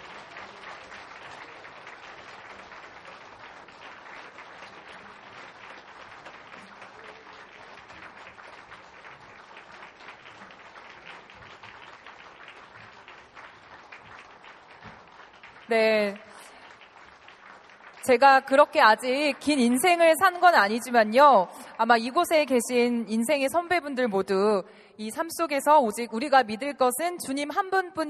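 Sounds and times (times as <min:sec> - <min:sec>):
large crowd applauding: 0:00.0 - 0:21.7
speech: 0:15.7 - 0:16.3, 0:18.0 - 0:28.0.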